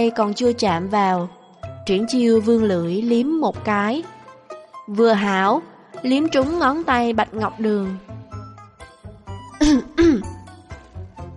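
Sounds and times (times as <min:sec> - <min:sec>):
speech: 0:00.0 - 0:04.2, 0:04.9 - 0:08.1
dry cough: 0:09.5 - 0:10.4.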